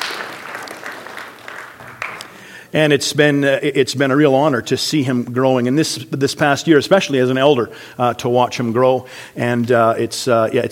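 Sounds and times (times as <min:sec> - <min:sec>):
church congregation applauding: 0:00.0 - 0:02.6
speech: 0:02.7 - 0:10.7.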